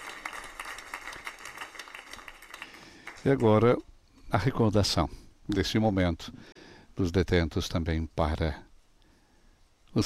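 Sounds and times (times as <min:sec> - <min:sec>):
spontaneous applause: 0:00.0 - 0:03.8
speech: 0:03.2 - 0:08.6.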